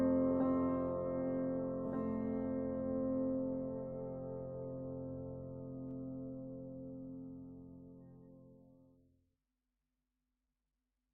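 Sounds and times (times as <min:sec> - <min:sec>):
solo piano: 0:00.0 - 0:08.7.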